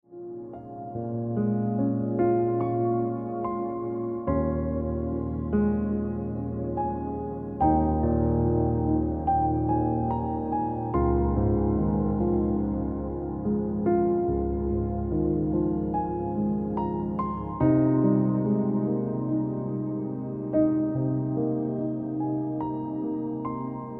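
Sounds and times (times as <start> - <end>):
piano music: 0.1 - 23.9.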